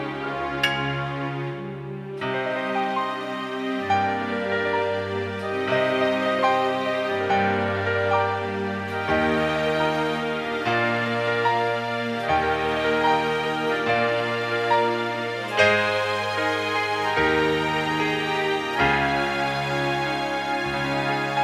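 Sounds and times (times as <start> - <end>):
orchestra through Yamaha SPX90 hall reverb: 0.0 - 21.4.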